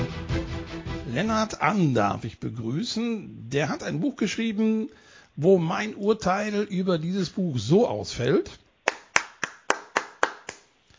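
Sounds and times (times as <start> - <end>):
speech: 1.2 - 8.6
single person clapping: 8.9 - 10.7.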